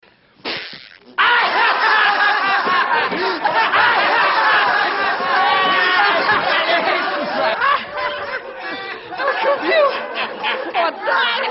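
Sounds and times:
fart: 0:00.4 - 0:01.2
person laughing: 0:01.2 - 0:11.0.

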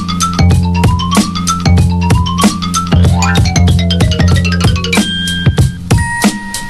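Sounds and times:
cartoon xylophone: 0:00.1 - 0:06.3.

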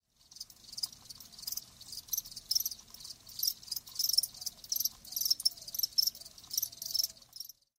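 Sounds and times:
crickets chirping: 0:00.2 - 0:07.7.

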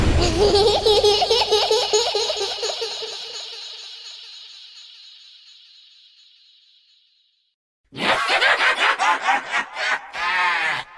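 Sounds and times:
teddy bear laugh: 0:00.2 - 0:03.6, 0:07.9 - 0:10.8.

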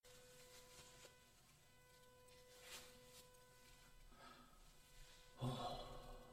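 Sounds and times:
person sighing in the bath: 0:05.4 - 0:06.3.

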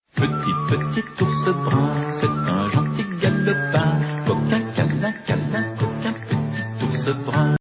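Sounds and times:
opening theme music: 0:00.1 - 0:07.5.

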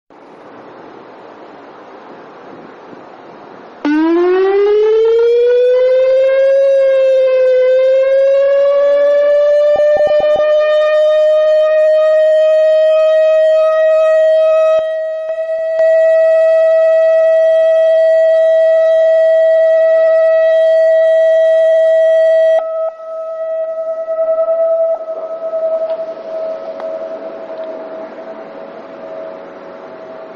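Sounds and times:
electronic siren: 0:03.8 - 0:30.3.

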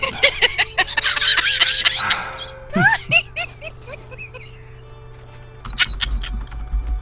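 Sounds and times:
cackling: 0:00.2 - 0:04.6, 0:05.6 - 0:06.4.

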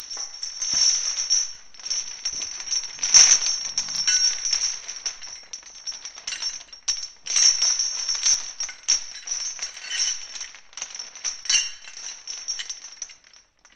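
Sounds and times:
chains dragging: 0:00.0 - 0:13.4.

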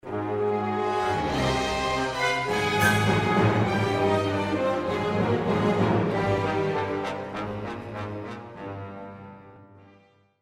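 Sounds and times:
evil music: 0:00.1 - 0:09.6.

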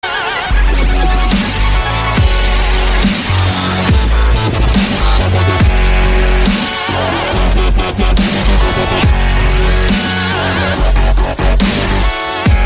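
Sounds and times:
dubstep music: 0:00.0 - 0:12.6.

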